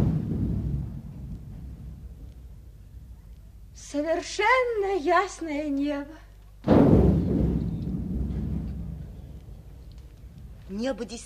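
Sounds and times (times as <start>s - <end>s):
first distant explosions of war: 0.0s - 2.3s, 6.7s - 10.6s
speech: 3.9s - 6.3s, 10.7s - 11.2s.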